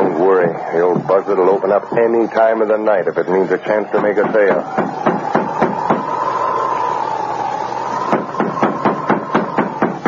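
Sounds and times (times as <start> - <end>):
faint hum: 0.0 - 10.0
speech: 0.5 - 5.0
knocking on a store door: 4.0 - 6.1, 8.1 - 10.0.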